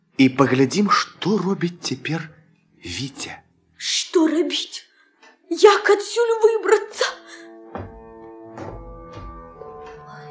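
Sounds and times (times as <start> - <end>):
speech: 0.2 - 4.8, 5.5 - 7.2
dull knocks behind a wall: 7.7 - 10.0.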